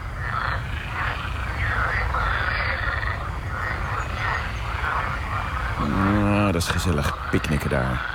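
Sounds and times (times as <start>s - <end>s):
chorus of green frogs croaking at a small lake on the Heidestein estate near Zeist, Netherlands: 0.0s - 8.1s
speech: 6.6s - 8.1s.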